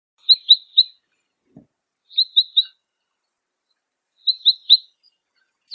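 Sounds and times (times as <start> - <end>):
long-tailed rosefinch Uragus sibiricus: 0.2 - 1.0, 2.1 - 2.8, 4.2 - 4.8.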